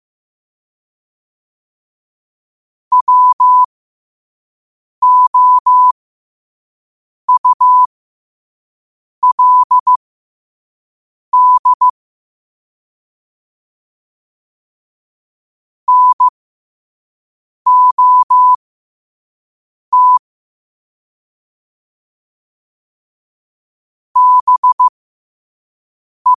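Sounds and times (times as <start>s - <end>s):
morse code at 5 wpm: 2.9s - 3.7s, 5.0s - 5.9s, 7.3s - 7.9s, 9.2s - 10.0s, 11.4s - 11.9s, 15.9s - 16.3s, 17.7s - 18.6s, 19.9s - 20.2s, 24.2s - 24.9s.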